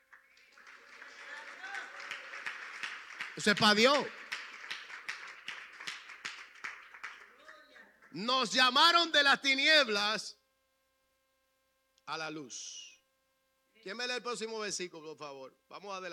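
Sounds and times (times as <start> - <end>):
audience applause: 0.0 - 8.2
speech: 3.4 - 4.2, 8.2 - 10.4, 12.1 - 12.8, 13.8 - 16.1.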